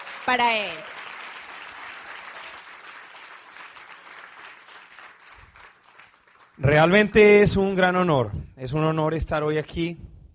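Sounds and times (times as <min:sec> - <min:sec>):
audience applause: 0:00.0 - 0:07.2
speech: 0:00.3 - 0:00.9, 0:06.6 - 0:10.1.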